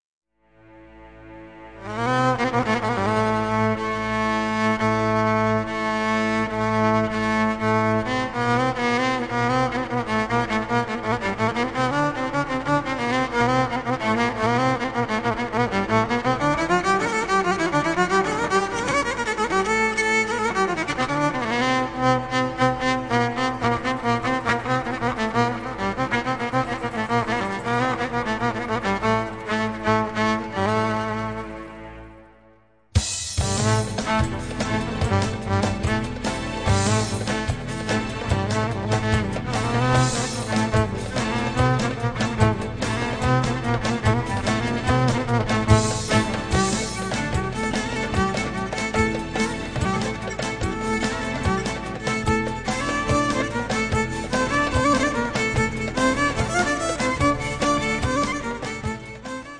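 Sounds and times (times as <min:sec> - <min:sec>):
solo violin: 0:00.4 - 0:32.6, 0:33.4 - 0:59.5.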